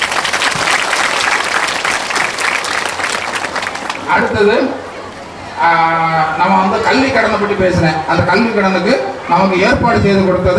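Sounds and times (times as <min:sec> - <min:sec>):
audience applause at a village gathering: 0:00.0 - 0:04.3
speech: 0:04.1 - 0:04.8, 0:05.6 - 0:10.5.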